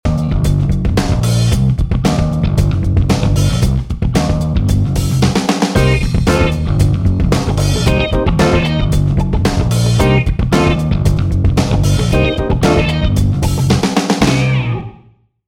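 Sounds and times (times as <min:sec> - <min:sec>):
party funk music: 0:00.1 - 0:14.9.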